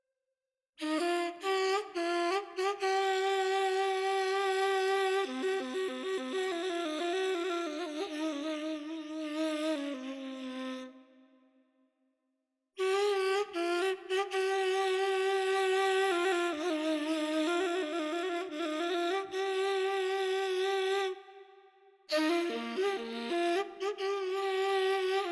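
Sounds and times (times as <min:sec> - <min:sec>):
ney flute playing Persian classical radif in Dashti mode: 0:00.8 - 0:11.0, 0:12.8 - 0:21.2, 0:22.1 - 0:25.3.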